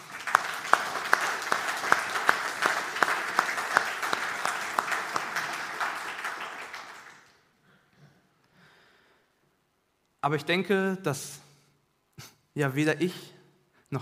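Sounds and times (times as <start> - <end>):
audience clapping: 0.0 - 7.6
speech: 10.2 - 11.4, 12.6 - 13.3.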